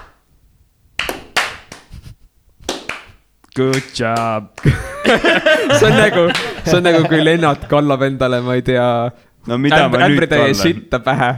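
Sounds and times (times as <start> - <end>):
slow hand claps: 0.0 - 0.3, 1.0 - 7.8
speech: 3.6 - 11.3.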